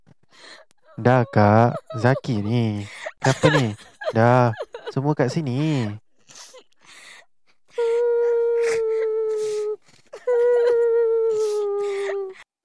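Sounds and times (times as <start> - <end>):
woman crying and wailing: 0.9 - 6.7, 7.8 - 12.4
laughter: 1.0 - 6.0
speech: 1.0 - 6.0.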